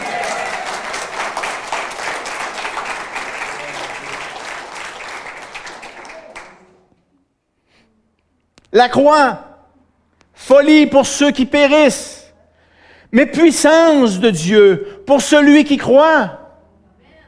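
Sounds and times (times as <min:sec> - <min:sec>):
audience applauding: 0:00.0 - 0:06.9
speech: 0:08.8 - 0:09.5, 0:10.5 - 0:12.2, 0:13.1 - 0:16.4.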